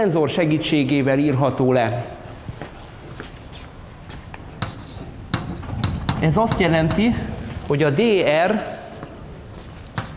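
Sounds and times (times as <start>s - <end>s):
speech: 0.0s - 2.2s, 6.2s - 8.7s
writing on a board during a lecture on tensors: 4.6s - 7.1s, 9.9s - 10.1s.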